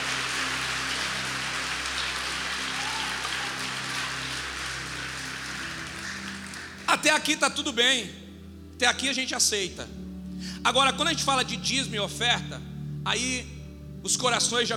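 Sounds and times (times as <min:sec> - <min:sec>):
audience applauding: 0:00.0 - 0:07.2
speech: 0:06.9 - 0:08.2, 0:08.8 - 0:10.0, 0:10.6 - 0:14.7.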